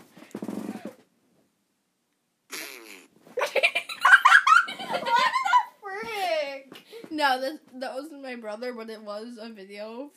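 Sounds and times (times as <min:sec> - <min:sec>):
recorded farting: 0:00.2 - 0:01.0, 0:02.5 - 0:03.2
laughter: 0:03.4 - 0:05.8
speech: 0:07.2 - 0:10.1.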